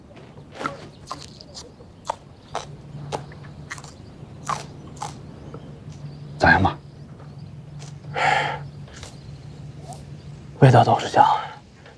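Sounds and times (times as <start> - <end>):
low steady hum: 0.0 - 11.9
someone biting and chewing wild garlic: 0.6 - 6.0, 8.9 - 10.1
speech: 10.6 - 11.5.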